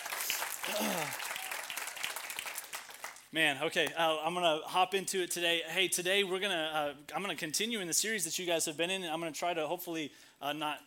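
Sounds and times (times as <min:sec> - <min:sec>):
round of applause: 0:00.0 - 0:03.3
speech: 0:03.3 - 0:10.8.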